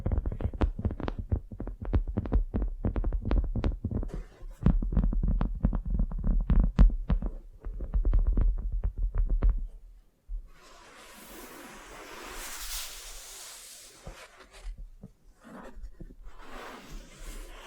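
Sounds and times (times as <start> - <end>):
sticky taps and clicks of wax facial treatment: 0.0 - 9.6
soft steady hiss of brushing or spreading: 10.5 - 14.4.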